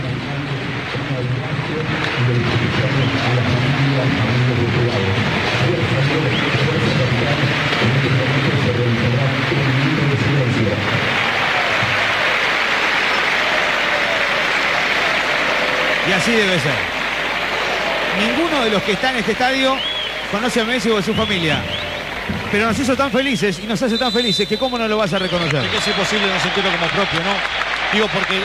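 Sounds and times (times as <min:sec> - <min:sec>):
stadium crowd of Independiente fans clapping: 0:00.0 - 0:28.4
speech: 0:01.2 - 0:04.9, 0:16.2 - 0:16.9, 0:18.2 - 0:21.8, 0:22.5 - 0:28.4.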